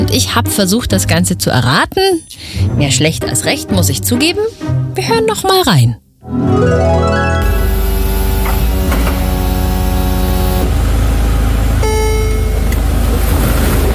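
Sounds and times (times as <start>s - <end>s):
speech: 0.1s - 7.3s
car engine droning: 7.4s - 13.9s.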